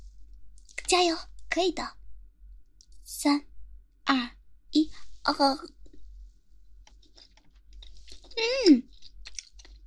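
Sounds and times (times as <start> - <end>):
speech: 0.9 - 2.0, 3.1 - 3.5, 4.1 - 5.8, 8.4 - 8.9
person chewing a chewy chicken dish: 6.9 - 9.8.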